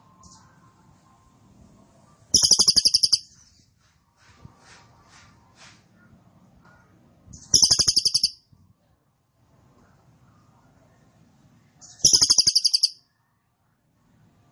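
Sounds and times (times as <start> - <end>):
cililin singing rapid high-pitched rattling trills: 2.3 - 3.4, 7.4 - 8.4, 11.8 - 13.0.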